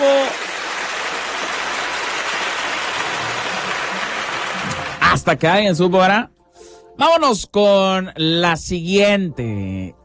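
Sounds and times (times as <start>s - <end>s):
audience applause: 0.0s - 5.2s
speech: 5.2s - 6.4s, 7.0s - 10.0s.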